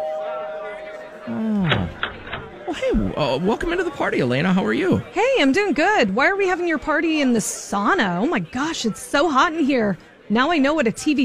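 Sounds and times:
electronic doorbell ringing: 0.0s - 1.4s
speech: 1.2s - 2.0s, 2.7s - 11.2s.

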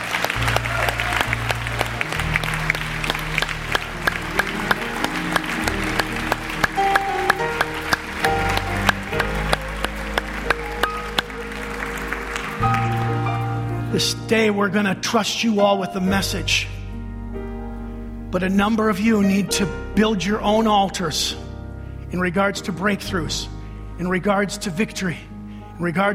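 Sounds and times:
audience clapping and cheering loudly: 0.0s - 13.6s
sharp rhythmic hand claps: 0.0s - 13.6s
lively church music with deep steady bass line: 0.0s - 26.1s
speech: 14.0s - 16.8s, 18.3s - 21.4s, 22.1s - 26.1s.

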